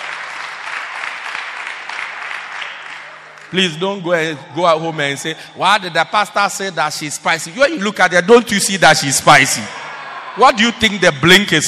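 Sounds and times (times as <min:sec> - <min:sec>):
audience applause: 0:00.0 - 0:03.5
speech: 0:03.5 - 0:09.8, 0:10.4 - 0:11.6.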